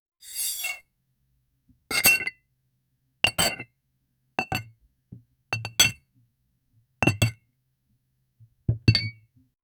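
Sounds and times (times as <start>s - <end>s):
ceramic plate clink: 1.9s - 2.4s, 3.3s - 3.6s, 4.4s - 4.7s, 5.6s - 6.0s, 7.0s - 7.4s.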